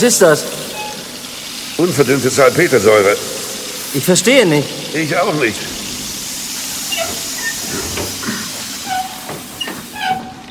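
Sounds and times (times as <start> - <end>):
speech: 0.0 - 0.7, 1.8 - 5.8
steam train hissing: 0.0 - 10.4
metallic squeals and clanks: 0.7 - 1.6, 5.7 - 10.4.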